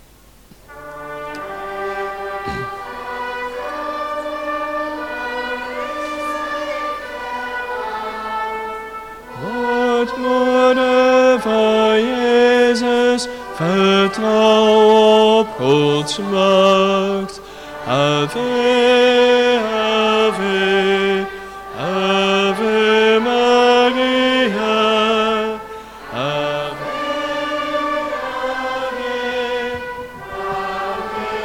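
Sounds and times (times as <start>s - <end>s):
Marian song with trumpet: 0.7s - 31.4s.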